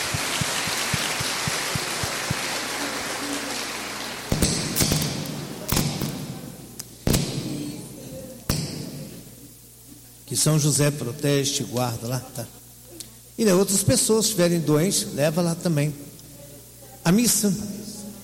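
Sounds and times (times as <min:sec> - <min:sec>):
loud sharp claps or knocks: 0:00.0 - 0:02.7, 0:04.2 - 0:06.1
crowd applauding: 0:00.0 - 0:04.9
speech: 0:10.4 - 0:12.6, 0:13.4 - 0:16.1, 0:17.0 - 0:18.0.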